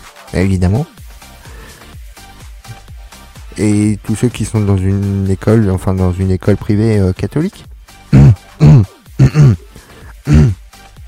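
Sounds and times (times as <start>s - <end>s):
speech: 0.3s - 1.0s, 3.6s - 7.7s
throat clearing: 8.1s - 10.6s.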